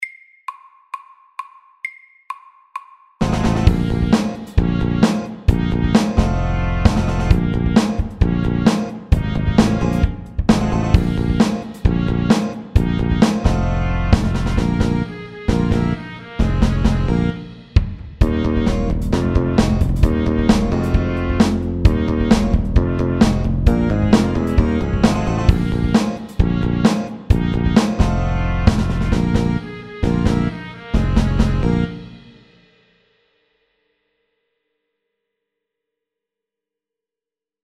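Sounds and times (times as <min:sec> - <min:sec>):
fast funky music: 0:03.2 - 0:32.4.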